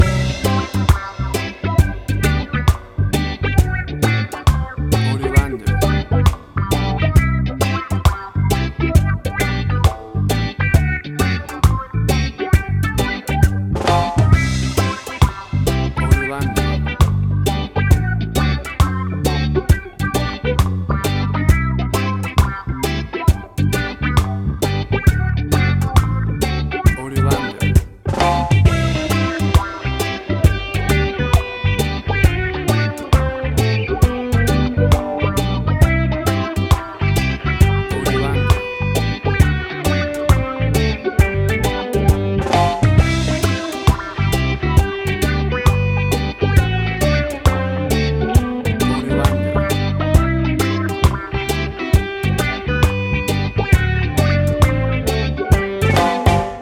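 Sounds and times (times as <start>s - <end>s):
cute happy summer reggae music: 0.0s - 56.6s.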